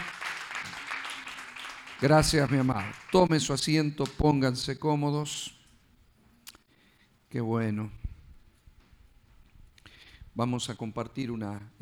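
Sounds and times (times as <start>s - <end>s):
audience applause: 0.0s - 3.5s
speech: 2.0s - 5.6s, 7.3s - 8.0s, 10.4s - 11.8s.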